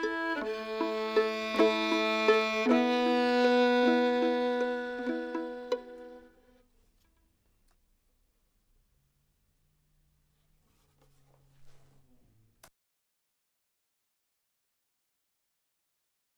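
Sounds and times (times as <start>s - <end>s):
simple accompaniment: 0.0s - 6.3s.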